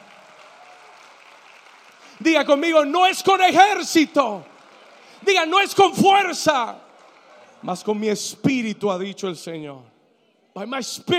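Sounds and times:
audience applause: 0:00.0 - 0:08.0
speech: 0:02.2 - 0:04.5, 0:05.2 - 0:06.8, 0:07.6 - 0:09.9, 0:10.6 - 0:11.1.

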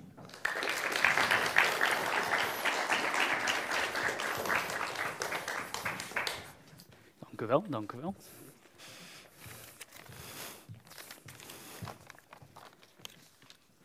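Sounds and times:
audience applause: 0:00.0 - 0:06.6
speech: 0:07.4 - 0:08.4.

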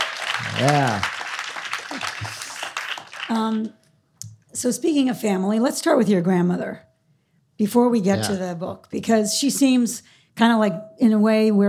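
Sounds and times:
audience applause: 0:00.0 - 0:03.7
speech: 0:00.4 - 0:01.1, 0:01.9 - 0:02.4, 0:03.3 - 0:03.8, 0:04.5 - 0:06.9, 0:07.6 - 0:11.6.

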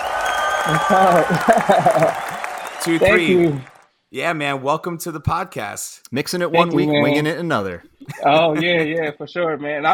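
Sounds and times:
audience clapping to welcome a podcast guest: 0:00.0 - 0:03.9
speech: 0:00.6 - 0:02.2, 0:02.8 - 0:09.9
laughter: 0:00.9 - 0:03.6, 0:08.0 - 0:09.2.

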